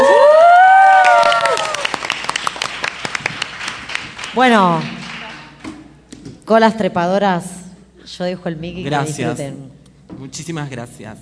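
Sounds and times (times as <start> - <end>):
crowd cheering and whooping: 0.0 - 2.2
audience applause: 0.0 - 5.7
speech: 4.4 - 5.0, 6.5 - 11.2.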